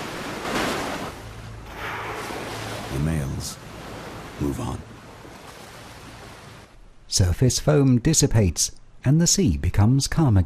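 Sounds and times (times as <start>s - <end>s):
female marine animal slapping her flippers down heavily on the sea: 0.0s - 6.6s
speech: 2.9s - 3.7s, 4.4s - 4.9s, 7.1s - 10.4s.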